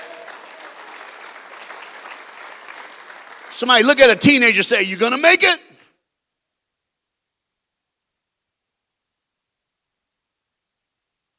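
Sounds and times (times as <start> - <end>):
crowd applauding: 0.0 - 5.3
speech: 3.5 - 5.6.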